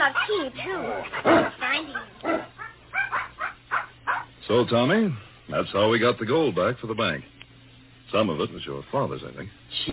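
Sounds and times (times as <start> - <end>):
puppy barking: 0.0 - 4.4
speech: 0.3 - 1.6, 4.5 - 7.4, 8.1 - 9.9.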